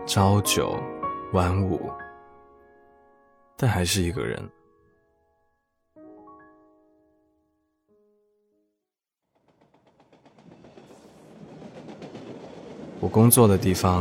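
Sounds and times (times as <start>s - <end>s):
speech: 0.1s - 2.0s, 3.6s - 4.6s, 13.0s - 14.0s
train rumbling past on overhead city railway: 9.3s - 14.0s.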